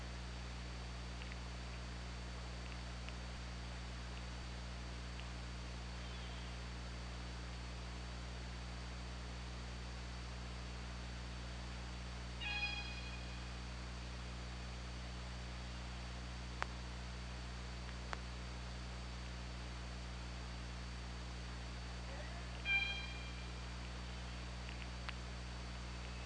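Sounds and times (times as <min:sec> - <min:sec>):
low hum: 0:00.0 - 0:26.2
killer whale calls: 0:12.4 - 0:13.3, 0:22.6 - 0:23.4
sharp clicks: 0:24.6 - 0:25.2.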